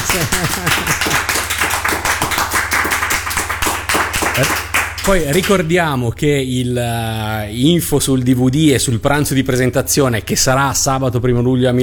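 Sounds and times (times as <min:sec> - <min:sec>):
laughter: 0:00.0 - 0:02.5
audience applause: 0:00.0 - 0:05.6
speech: 0:00.2 - 0:02.2, 0:04.4 - 0:11.8.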